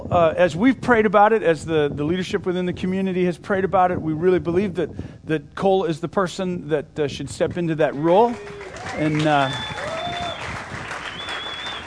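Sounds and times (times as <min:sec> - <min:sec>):
speech: 0:00.1 - 0:09.7
audience clapping at a community gathering: 0:07.8 - 0:11.8
thin whistle-like tone: 0:11.1 - 0:11.8.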